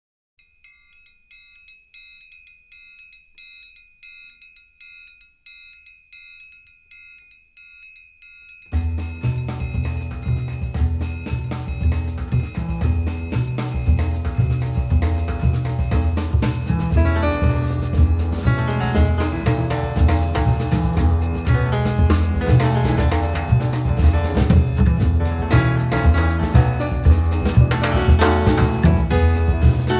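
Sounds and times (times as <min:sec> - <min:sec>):
bright blues music: 0:08.8 - 0:29.9.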